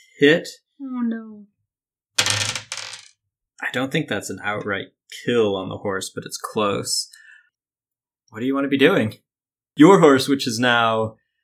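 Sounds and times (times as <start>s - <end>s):
speech: 0.2s - 1.5s, 3.6s - 7.2s, 8.3s - 9.2s, 9.8s - 11.2s
dice rattling and clattering across a hard surface: 2.2s - 3.1s.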